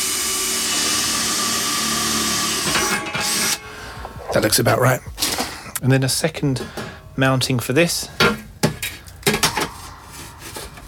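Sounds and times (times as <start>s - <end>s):
power drill drilling into a dish: 0.0s - 3.6s
speech: 4.4s - 5.1s, 5.8s - 8.2s.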